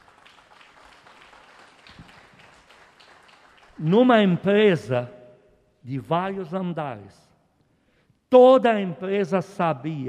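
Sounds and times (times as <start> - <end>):
audience applause: 0.0 - 3.8
speech: 3.8 - 5.2, 5.8 - 7.2, 8.3 - 10.0.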